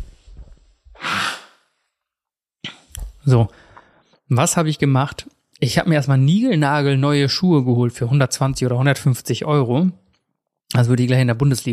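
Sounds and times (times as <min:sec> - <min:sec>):
person sniffling: 0:01.0 - 0:01.7
speech: 0:03.2 - 0:03.6, 0:04.3 - 0:10.0, 0:10.7 - 0:11.7.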